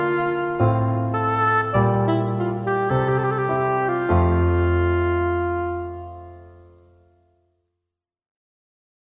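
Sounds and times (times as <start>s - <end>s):
violin sonata: 0.0s - 6.7s.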